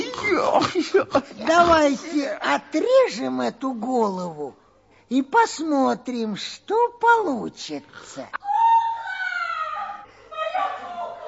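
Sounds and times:
speech: 0.4 - 8.4
child crying over his broken doll: 8.4 - 11.2.

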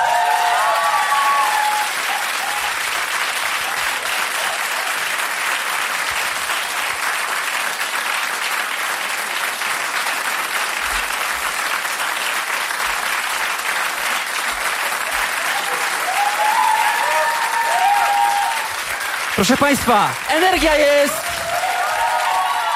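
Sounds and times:
faint cheering voices: 0.0 - 2.8, 15.0 - 22.7
audience applause: 0.0 - 22.7
speech: 19.4 - 21.3.

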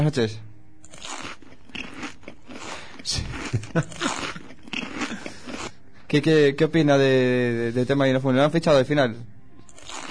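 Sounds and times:
speech: 0.0 - 0.5, 3.1 - 4.1, 6.1 - 9.4
person chewing crunchy food over a phone line: 0.8 - 5.8, 9.6 - 10.0.

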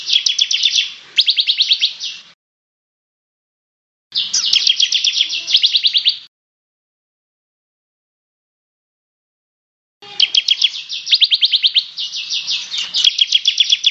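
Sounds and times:
bird song: 0.0 - 2.4, 4.1 - 6.3, 10.0 - 13.8.

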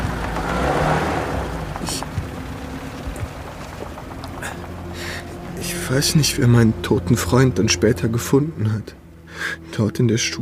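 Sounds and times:
rain hissing: 0.0 - 8.0
car engine rumbling as the car pulls away: 0.0 - 10.3
speech: 5.9 - 9.0, 9.8 - 10.3.

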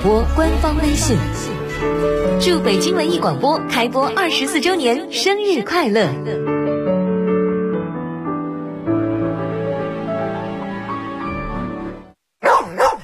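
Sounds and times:
speech: 0.0 - 6.7
steady musical passage: 0.0 - 12.2
dog barking: 12.4 - 13.0.

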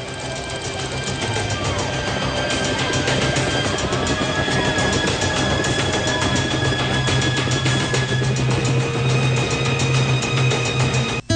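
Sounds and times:
helicopter flying overhead: 0.0 - 11.2.

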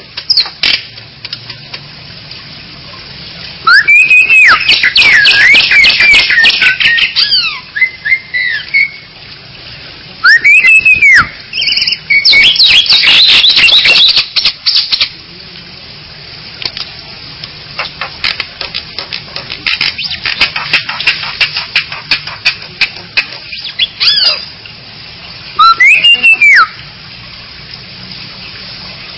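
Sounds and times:
Bali myna squawking calls: 3.7 - 9.1, 10.2 - 15.1, 17.8 - 18.3, 19.7 - 24.6, 25.6 - 26.8.

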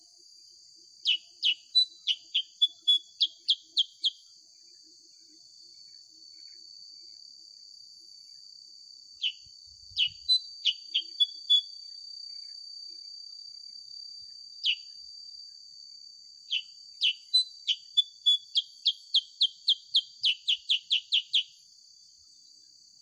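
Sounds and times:
sooty-headed bulbul song of sharp downslurred chirps: 1.0 - 4.3, 9.2 - 11.7, 14.6 - 14.9, 16.5 - 21.6.

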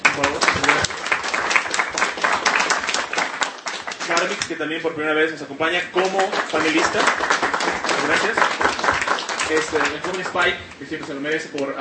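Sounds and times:
audience applause: 0.0 - 4.5, 6.0 - 11.7
speech: 0.2 - 0.4, 4.2 - 7.3, 8.1 - 8.9, 9.5 - 11.7.

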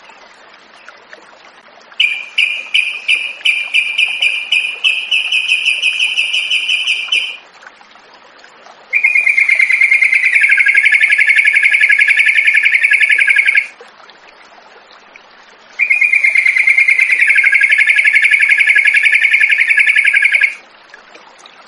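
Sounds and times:
yellow-vented bulbul song of short sharp chirps: 2.0 - 7.4, 8.9 - 13.7, 15.8 - 20.6.

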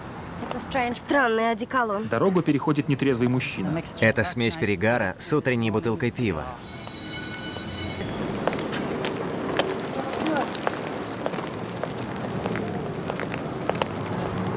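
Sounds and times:
speech: 0.5 - 6.9
bulldog collar chain dragging on cobblestones: 6.6 - 14.5
bulldog walking: 6.8 - 14.5.

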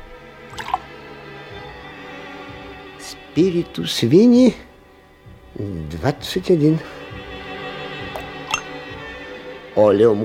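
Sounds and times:
liquid being poured into glass flasks: 0.5 - 0.9, 8.2 - 8.7
speech: 3.4 - 4.7, 5.6 - 7.0, 9.8 - 10.2.

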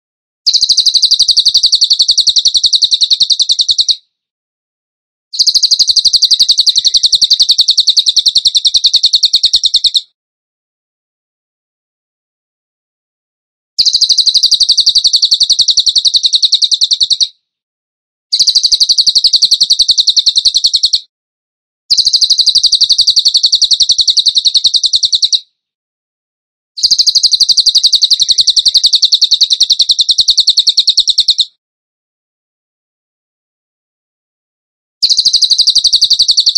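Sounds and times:
bird singing rapid high chirps: 0.5 - 4.1, 5.4 - 10.2, 13.8 - 17.4, 18.3 - 21.1, 21.9 - 25.5, 26.8 - 31.6, 35.0 - 36.5.

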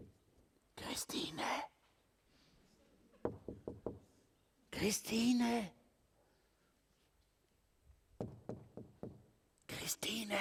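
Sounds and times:
speech: 1.0 - 1.7, 4.8 - 5.8, 10.1 - 10.3
knocking on a door: 3.2 - 4.0, 8.2 - 9.3.

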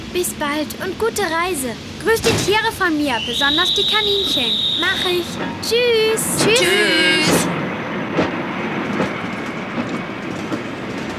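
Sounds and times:
train rolling along the rails: 0.0 - 11.1
wheels clacking over track joints: 0.0 - 11.1
speech: 0.1 - 7.6.

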